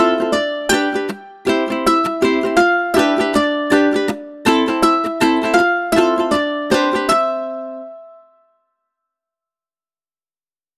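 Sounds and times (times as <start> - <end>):
ukulele: 0.0 - 8.6.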